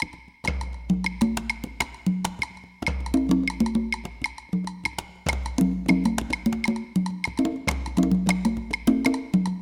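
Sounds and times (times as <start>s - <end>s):
rumba guaguanco music: 0.0s - 9.6s.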